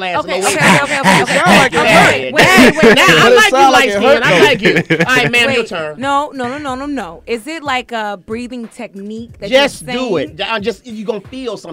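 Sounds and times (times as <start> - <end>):
speech: 0.0 - 11.7
laughter: 0.2 - 5.6
voice imitating a hunching sound with strained wordless groans: 0.4 - 2.7.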